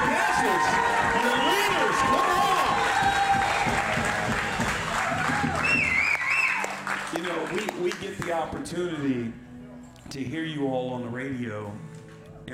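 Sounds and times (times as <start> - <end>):
audience applause for pastors: 0.0 - 8.4
speech: 8.5 - 9.5, 10.1 - 11.9.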